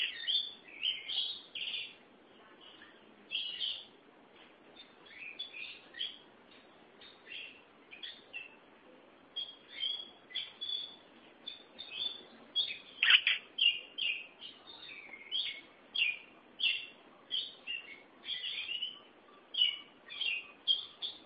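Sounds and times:
Oriental magpie-robin singing: 0.0s - 2.0s, 2.6s - 3.9s, 4.8s - 6.3s, 7.0s - 8.6s, 9.4s - 21.2s
faint steady hiss: 0.0s - 21.2s.

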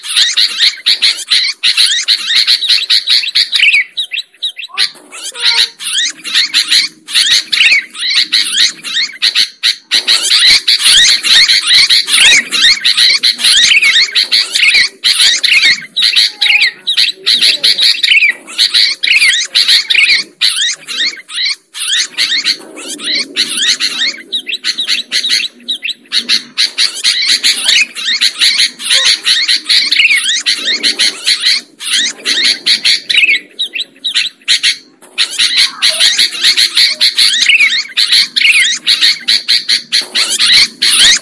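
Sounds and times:
lovebird chatter: 0.0s - 41.1s.

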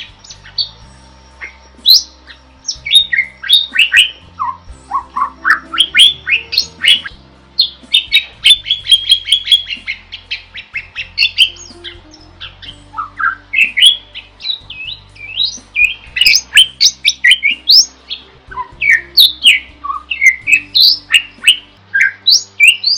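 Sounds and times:
bird singing loudly in a masteran training recording: 0.0s - 22.9s.

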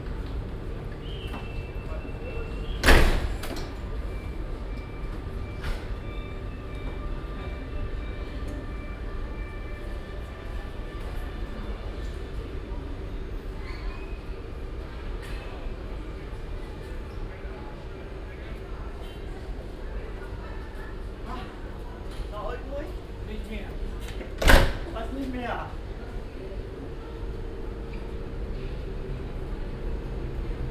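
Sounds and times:
train doors shutting at platform 12 of Hannover Hauptbahnhof, Germany: 0.1s - 11.2s, 23.9s - 25.0s
voices murmuring: 7.1s - 30.6s.

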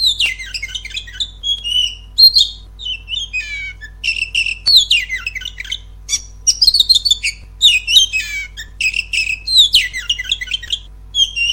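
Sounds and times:
Oriental magpie-robin singing whistled notes trills and chirps: 0.0s - 11.5s.

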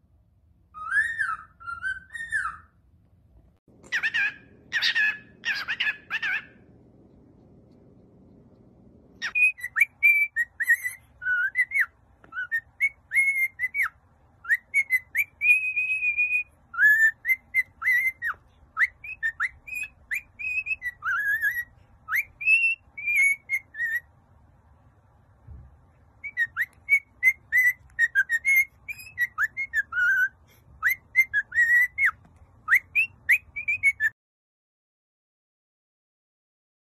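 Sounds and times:
cockatiel whistled song: 0.7s - 2.8s, 3.8s - 6.8s, 9.2s - 24.1s, 26.2s - 34.2s.

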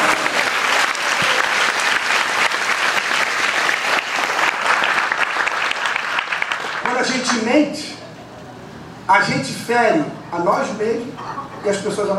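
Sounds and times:
audience applauding the Lord during an evangelical church service: 0.0s - 7.4s
speech: 9.1s - 12.1s.

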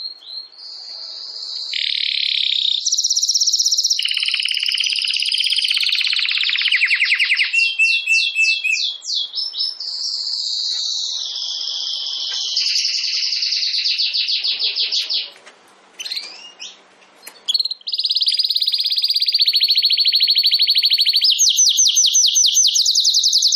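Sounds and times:
domestic canary trilling song: 0.0s - 15.4s, 16.0s - 23.5s.

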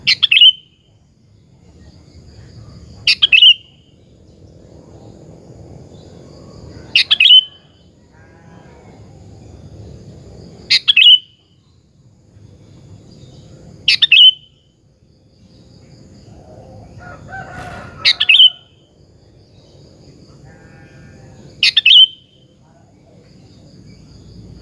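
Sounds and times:
sooty-headed bulbul singing bubbling phrases: 0.0s - 0.9s, 3.1s - 3.9s, 7.0s - 7.6s, 10.7s - 11.6s, 13.9s - 14.7s, 18.1s - 18.8s, 21.6s - 22.5s.

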